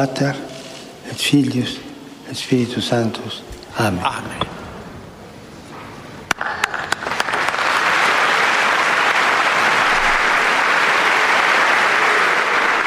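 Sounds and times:
speech: 0.0s - 0.5s, 1.1s - 4.6s
big applause in a hall: 6.3s - 12.8s.

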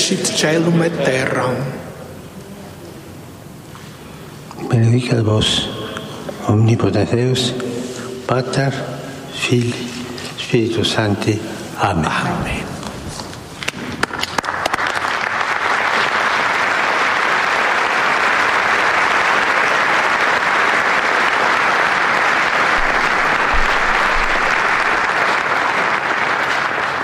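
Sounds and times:
speech: 0.1s - 1.9s, 4.6s - 5.8s, 6.4s - 7.7s, 8.3s - 12.7s
crowd applause thanking Pope Francis for his blessing: 13.6s - 27.0s.

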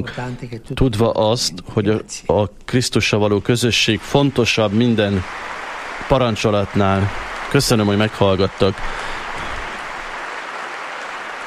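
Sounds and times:
speech: 0.0s - 9.2s
pilgrims applauding in the Paul VI Hall: 3.7s - 11.4s.

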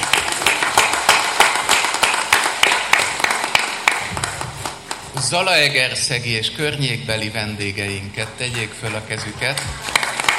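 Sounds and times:
audience applause: 0.0s - 5.5s, 7.7s - 10.3s
speech: 5.3s - 10.0s.

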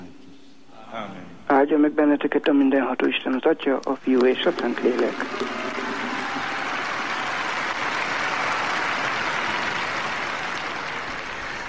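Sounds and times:
speech: 1.6s - 5.8s
thunderous applause from a large audience at a papal general audience: 4.2s - 11.6s.

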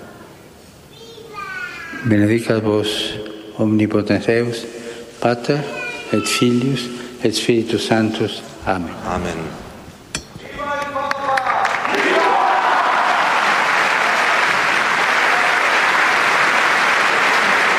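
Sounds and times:
speech: 2.0s - 9.6s
pilgrim crowd cheering and shouting: 11.3s - 17.6s.

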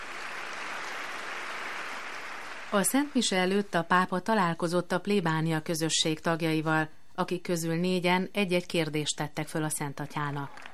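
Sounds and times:
parish community applauding at a papal confirmation: 0.0s - 2.8s, 10.5s - 10.7s
speech: 2.7s - 10.7s.

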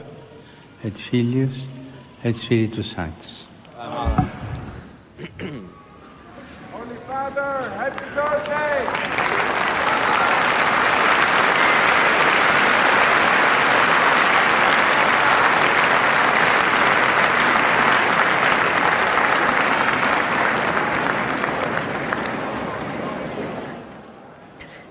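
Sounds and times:
speech: 0.8s - 4.4s
storm of applause from a large crowd: 6.8s - 24.1s.

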